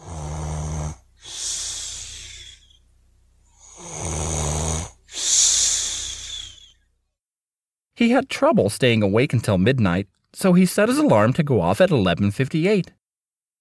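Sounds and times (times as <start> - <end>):
person snoring during a nap: 0.0 - 2.8, 3.5 - 6.8
speech: 8.0 - 13.0.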